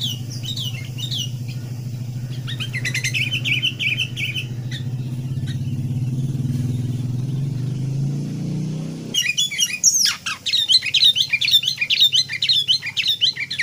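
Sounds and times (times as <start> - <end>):
sooty-headed bulbul chattering: 0.0 - 13.6.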